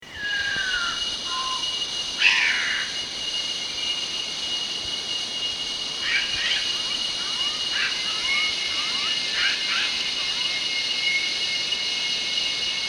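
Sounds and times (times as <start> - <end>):
steady high insect drone: 0.0 - 12.8
Bornean bristlehead calling: 0.1 - 3.0, 6.0 - 10.7.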